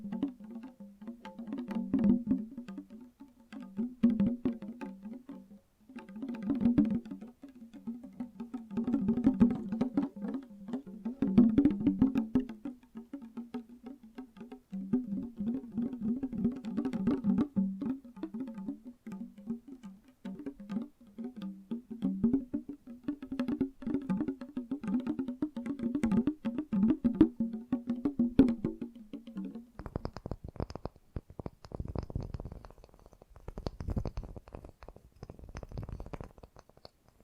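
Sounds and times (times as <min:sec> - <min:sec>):
fast gentle tapping with a hollow tone: 0:00.0 - 0:37.2.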